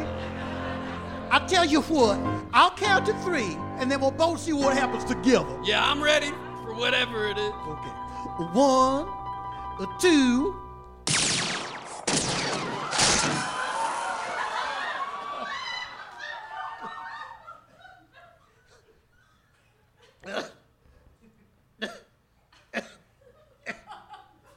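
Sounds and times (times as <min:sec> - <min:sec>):
crowd laughing and chuckling: 0:00.0 - 0:02.3, 0:12.6 - 0:20.2
speech: 0:01.3 - 0:09.2, 0:09.8 - 0:10.6
gunshots fired into the air: 0:11.1 - 0:13.7.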